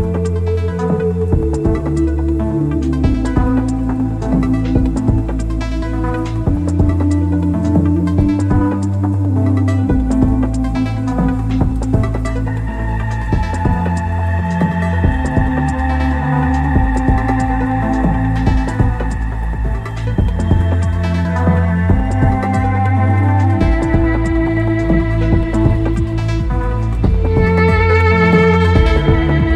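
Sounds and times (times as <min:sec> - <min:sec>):
instrumental music: 0:00.0 - 0:29.5.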